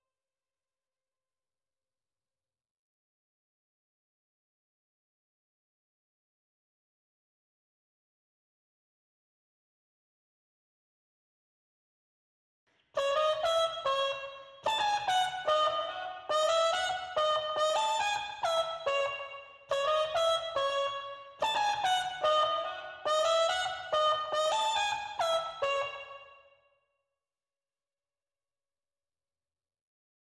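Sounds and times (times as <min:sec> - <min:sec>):
clean trumpet: 0:13.0 - 0:26.6.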